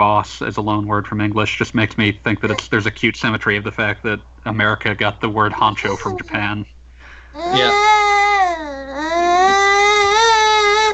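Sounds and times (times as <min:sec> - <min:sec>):
speech: 0:00.0 - 0:06.8, 0:07.4 - 0:08.0
baby crying: 0:05.8 - 0:06.5, 0:07.4 - 0:10.9.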